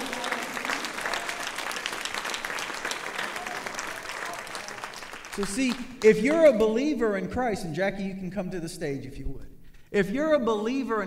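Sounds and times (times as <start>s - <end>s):
audience applauding: 0.0s - 6.4s
speech: 5.4s - 11.0s.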